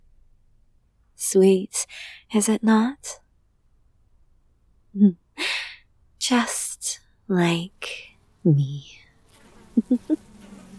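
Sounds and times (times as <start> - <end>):
speech: 1.2 - 3.2, 5.0 - 5.6, 6.2 - 9.0, 9.8 - 10.3
drone bees buzzing: 9.2 - 10.7.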